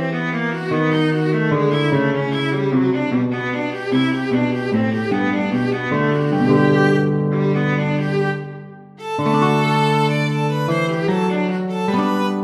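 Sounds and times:
courante in major for viola and guitar: 0:00.0 - 0:12.4.

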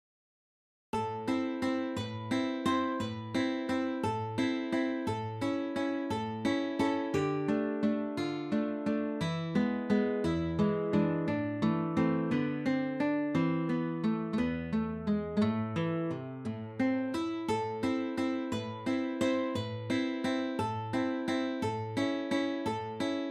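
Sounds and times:
easy guitar pieces playing: 0:01.0 - 0:23.2.

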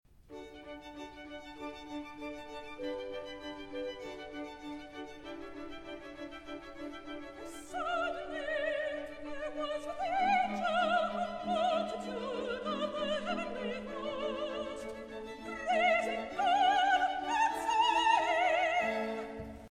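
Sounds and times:
concert choir recitative for soprano: 0:07.2 - 0:19.7.

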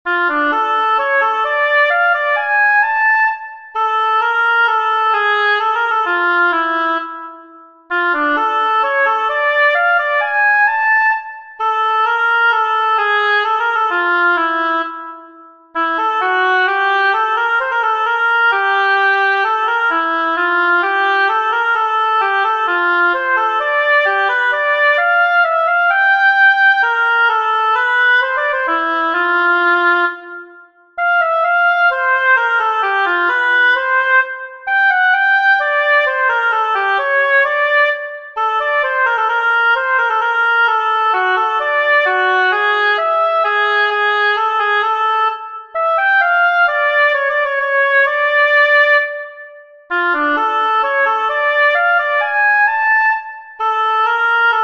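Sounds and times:
oboe: 0:00.1 - 0:54.6.

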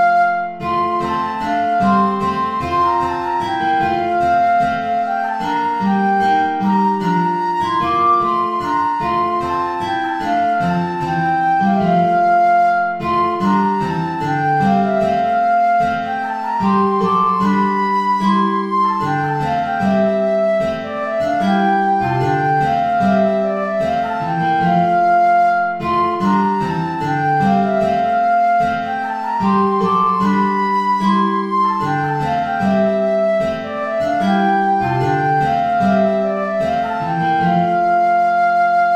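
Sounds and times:
ballet play-along backing track without guitar: 0:00.1 - 0:38.9.

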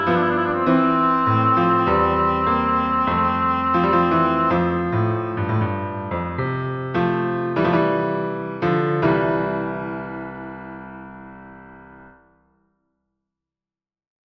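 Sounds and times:
oboe playing a chorale prelude: 0:00.0 - 0:06.1
piano accompanying a chorale prelude: 0:00.0 - 0:12.8.

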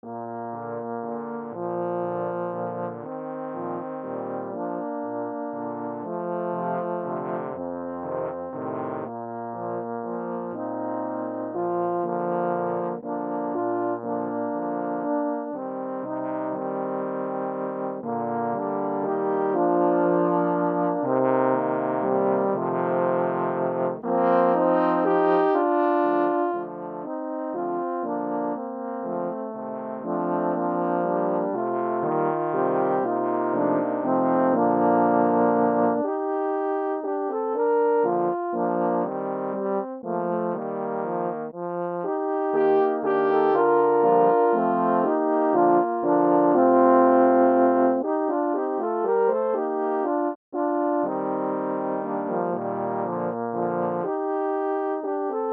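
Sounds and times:
eight horns playing a waltz: 0:00.0 - 0:55.5.

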